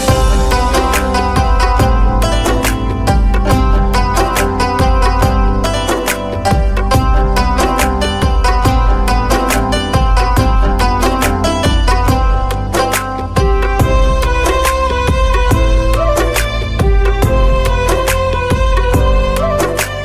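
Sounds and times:
Hindi Bollywood music ringtone: 0.0s - 20.0s.

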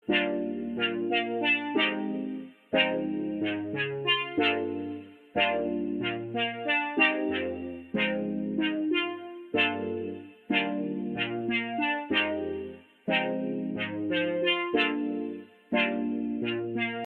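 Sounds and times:
ringtone: 0.0s - 17.0s.

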